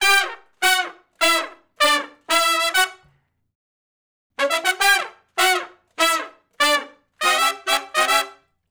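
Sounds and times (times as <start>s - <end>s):
R&B horn section funk riff in unison and harmony: 0.0s - 3.0s, 4.4s - 8.3s.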